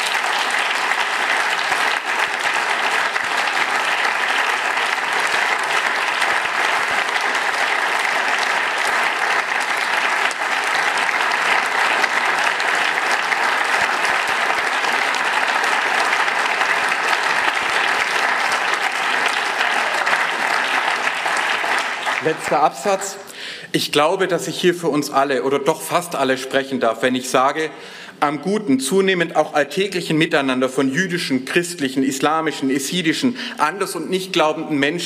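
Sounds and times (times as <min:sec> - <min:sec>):
audience applause: 0:00.0 - 0:23.3
speech: 0:22.5 - 0:35.0.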